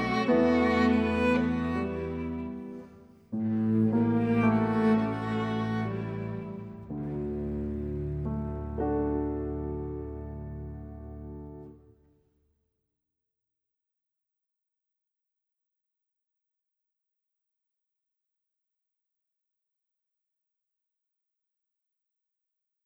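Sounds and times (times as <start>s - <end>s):
port de bras tango exam music: 0.0s - 11.6s.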